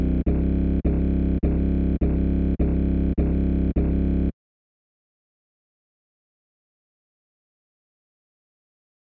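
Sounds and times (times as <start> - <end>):
bass: 0.0 - 4.3.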